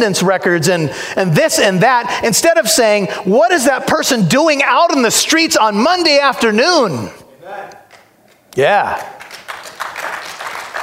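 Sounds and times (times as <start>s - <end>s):
speech: 0.0s - 7.8s, 8.6s - 9.2s
weak applause: 8.6s - 10.8s.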